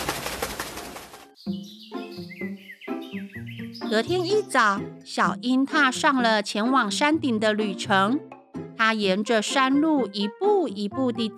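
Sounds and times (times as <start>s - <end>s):
owl flapping wings, flying away: 0.0s - 1.4s
speech: 3.9s - 11.3s.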